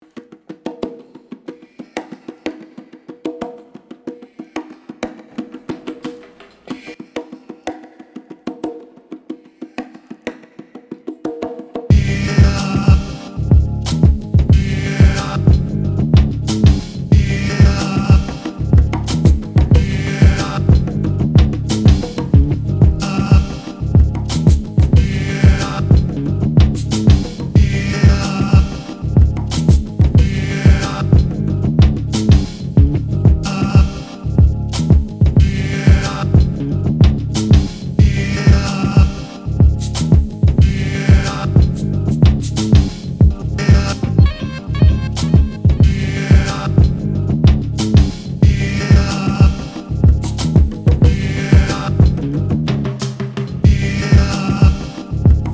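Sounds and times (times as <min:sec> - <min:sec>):
instrumental music: 0:11.9 - 0:55.5.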